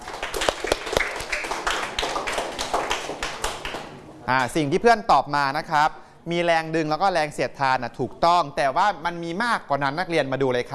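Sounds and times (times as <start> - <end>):
classroom students clapping: 0.0 - 4.1
speech: 4.3 - 10.7.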